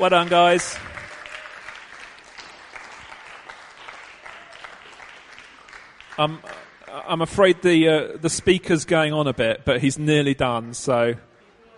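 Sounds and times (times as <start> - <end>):
speech: 0.0 - 0.9, 6.2 - 11.3
audience applause: 0.0 - 7.6.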